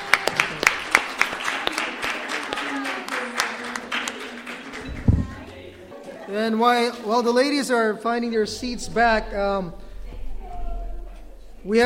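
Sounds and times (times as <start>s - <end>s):
audience applause: 0.0s - 5.5s
thump: 4.9s - 5.4s
speech: 6.3s - 9.8s, 11.6s - 11.8s.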